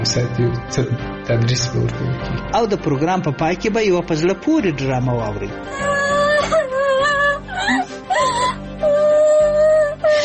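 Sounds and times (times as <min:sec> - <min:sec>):
speech: 0:00.0 - 0:06.1
child crying in a Pashto radio drama: 0:05.7 - 0:10.2.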